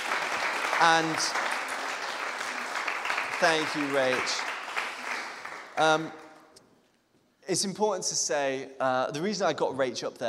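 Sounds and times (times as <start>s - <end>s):
audience applause: 0.0s - 6.3s
speech: 0.8s - 1.4s, 3.4s - 4.5s, 5.8s - 6.2s, 7.5s - 10.2s.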